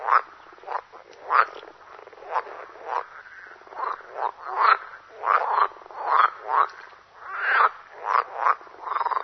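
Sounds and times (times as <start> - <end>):
water frog croaking in rattling nasal bursts: 0.0 - 9.2.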